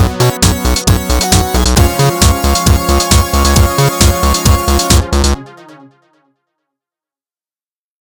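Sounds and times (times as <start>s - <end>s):
instrumental music: 0.0s - 6.3s.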